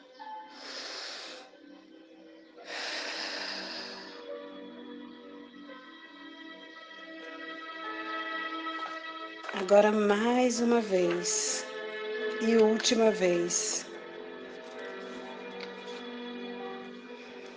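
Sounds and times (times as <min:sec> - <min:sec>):
soft sustained music: 0:00.0 - 0:17.5
person breathing in deeply during a guided breathing exercise: 0:00.5 - 0:01.6, 0:02.6 - 0:04.4
speech: 0:09.6 - 0:11.7, 0:12.4 - 0:13.9.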